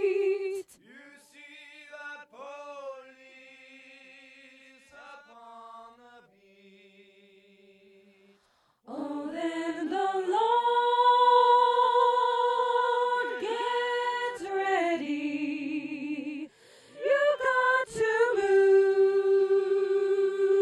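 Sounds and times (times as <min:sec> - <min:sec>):
soprano singing: 0:00.0 - 0:00.8, 0:08.9 - 0:20.6.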